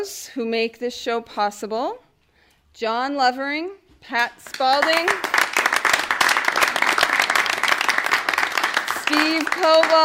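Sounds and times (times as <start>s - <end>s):
speech: 0.0s - 2.0s, 2.8s - 5.3s, 9.1s - 10.0s
audience clapping at a live storytelling show: 4.4s - 10.0s.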